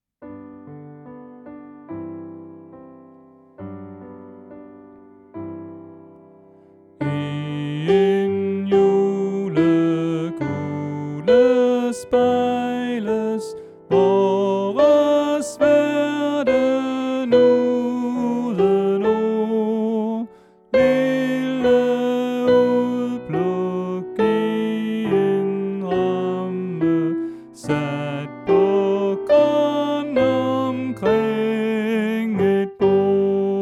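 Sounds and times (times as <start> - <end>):
soprano voice: 7.0 - 33.5.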